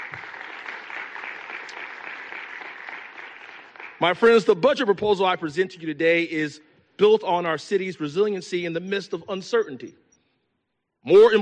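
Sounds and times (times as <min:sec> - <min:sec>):
crowd applause: 0:00.0 - 0:04.5
speech: 0:04.0 - 0:10.0, 0:11.0 - 0:11.4.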